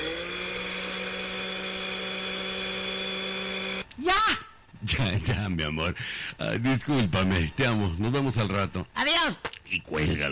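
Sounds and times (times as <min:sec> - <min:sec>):
blender running: 0:00.0 - 0:03.9
speech: 0:05.2 - 0:10.3.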